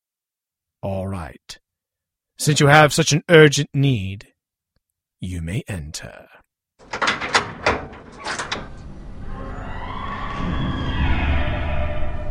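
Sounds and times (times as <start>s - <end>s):
speech: 0.8s - 1.6s, 2.4s - 4.3s, 5.2s - 6.4s
gate lock clicking open: 6.8s - 9.2s
gate swinging open with a grinding creak: 6.8s - 12.2s.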